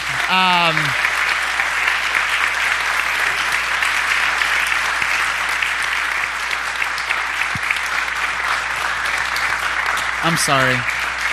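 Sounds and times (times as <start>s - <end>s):
person exclaiming: 0.0s - 1.0s
crowd applause: 0.0s - 11.3s
speech: 0.3s - 1.0s, 10.3s - 11.0s.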